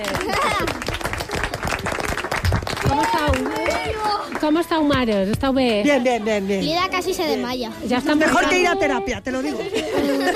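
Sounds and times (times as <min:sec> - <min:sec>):
audience of mothers clapping: 0:00.0 - 0:05.8
speech: 0:04.4 - 0:10.3
laughter: 0:05.7 - 0:06.8, 0:08.3 - 0:10.3.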